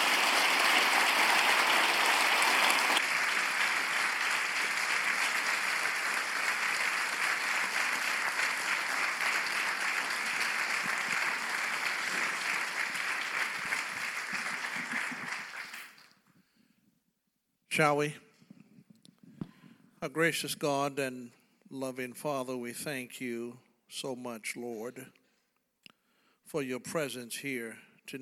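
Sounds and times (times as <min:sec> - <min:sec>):
audience applause: 0:00.0 - 0:16.2
speech: 0:17.8 - 0:18.2, 0:20.1 - 0:25.2, 0:26.5 - 0:28.2.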